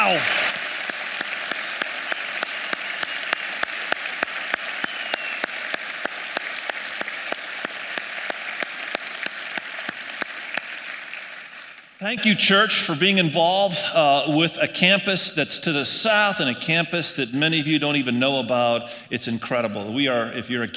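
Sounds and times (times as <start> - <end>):
audience applause: 0.0 - 12.0
speech: 0.1 - 0.4, 12.0 - 20.7.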